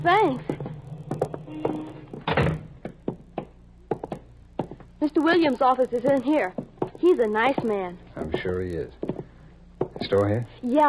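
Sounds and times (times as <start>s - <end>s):
speech: 0.0s - 0.5s, 5.0s - 9.0s, 10.0s - 10.8s
door thudding: 2.2s - 3.2s.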